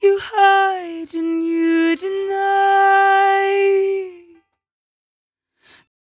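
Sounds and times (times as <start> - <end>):
velvet vocals at 57 bpm in A minor: 0.0 - 4.4.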